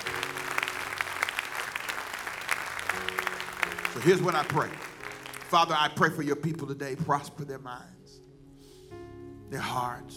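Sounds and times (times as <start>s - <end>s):
audience clapping: 0.0s - 6.1s
speech: 4.0s - 4.9s, 5.5s - 8.2s, 9.5s - 10.1s.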